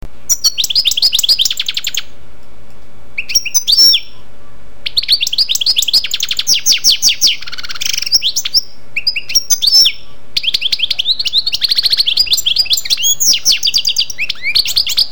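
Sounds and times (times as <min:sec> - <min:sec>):
European goldfinch song: 0:00.3 - 0:02.1, 0:04.9 - 0:15.0.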